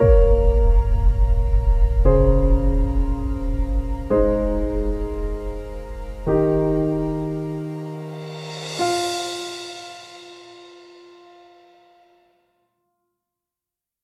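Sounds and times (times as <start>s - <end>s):
documentary music: 0.0s - 11.8s.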